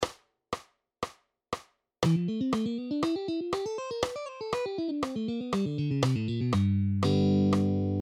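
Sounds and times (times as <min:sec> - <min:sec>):
guitar phrase at 120 BPM: 0:02.0 - 0:08.0.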